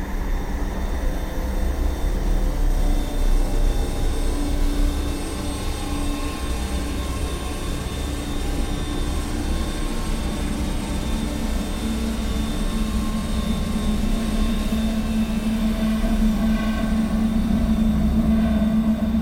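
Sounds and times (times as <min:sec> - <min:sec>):
sci-fi soundscape sound effects: 0:00.1 - 0:19.2.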